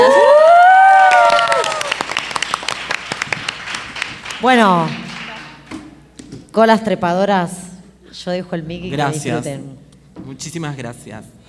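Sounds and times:
audience cheering and whoops at a bar show: 0.0s - 2.2s
audience applause at a bar show as performers take the stage: 0.8s - 6.0s
speech: 4.4s - 5.0s, 6.6s - 11.4s.

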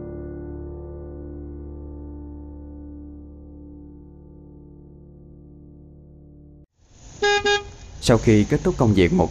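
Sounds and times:
car horn honking: 7.2s - 7.8s
speech: 8.1s - 9.3s.

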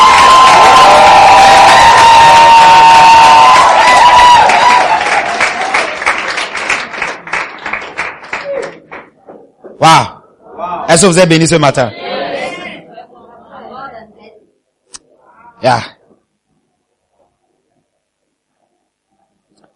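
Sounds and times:
church congregation cheering and shouting for joy: 0.0s - 8.8s
church congregation clapping: 3.4s - 9.1s
speech: 10.9s - 12.0s, 15.6s - 16.0s.

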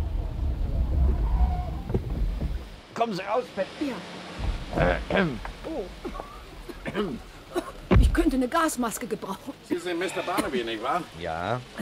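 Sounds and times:
car engine rumbling while pulling up and parking: 0.0s - 2.9s, 3.9s - 9.7s
speech: 3.0s - 6.3s, 6.9s - 7.3s, 8.2s - 11.7s.

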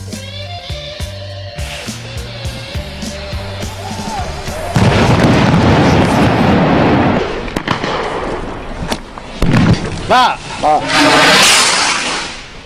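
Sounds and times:
rockets whistling: 1.5s - 8.6s, 10.8s - 12.6s
people shouting during riot clashes: 2.6s - 5.2s
rockets fired by striking miners at the Guardia Civil exploding: 2.8s - 10.1s, 10.9s - 12.6s.

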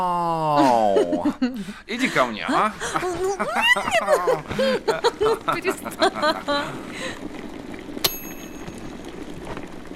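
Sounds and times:
laughter: 0.4s - 7.0s
speech: 1.0s - 7.3s
kettle coming to the boil: 2.8s - 9.9s
kettle whistling chirps: 7.8s - 9.6s.

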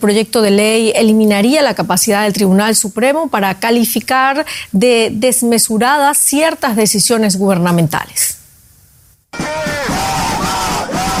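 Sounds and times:
speech: 0.0s - 8.4s
crowd of protesters in Israel chanting against a judicial reform: 9.4s - 11.1s.

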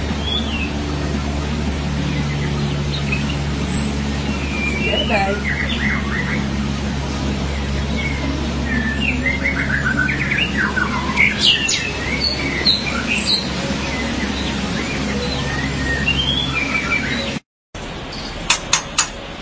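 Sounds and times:
steady low mechanical hum: 0.0s - 19.4s
magpie-robin or shama whistling and chattering: 2.2s - 6.7s, 7.6s - 17.4s.

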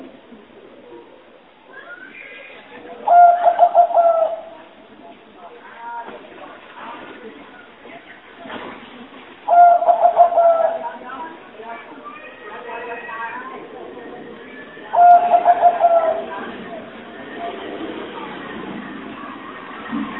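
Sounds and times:
spotted dove lure call cooing: 3.0s - 4.7s, 9.5s - 11.0s, 14.9s - 16.8s.

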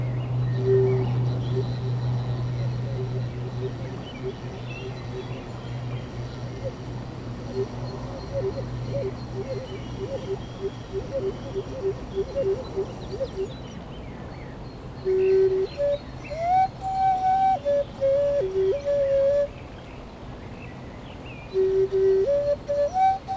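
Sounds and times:
Common Nightingale singing to defend its territory by the Leysse river in France: 0.4s - 13.8s, 15.1s - 19.5s, 21.5s - 23.3s.

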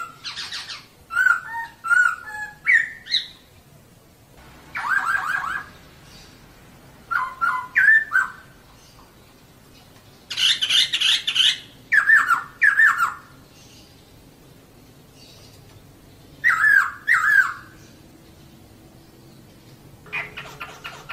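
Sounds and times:
bird song: 0.0s - 21.1s.

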